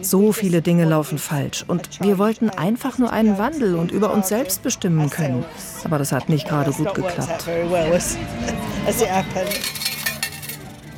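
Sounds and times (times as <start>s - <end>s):
speech: 0.0s - 9.9s
coins clinking from a change machine: 9.4s - 10.9s.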